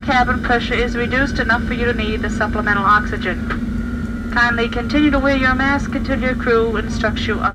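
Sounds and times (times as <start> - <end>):
jet airplane on a trip: 0.0 - 7.5.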